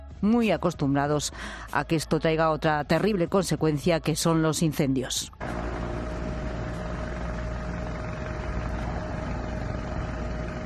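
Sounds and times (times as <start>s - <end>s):
speech: 0.2s - 5.6s
firefighting helicopters flying: 5.4s - 10.6s.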